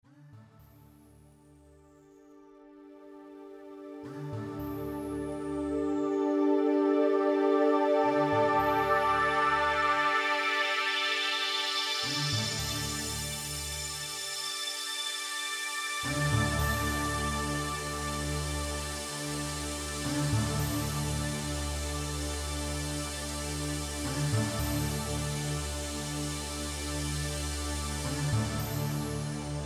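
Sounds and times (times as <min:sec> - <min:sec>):
shark-themed ambient music: 0:00.4 - 0:29.6.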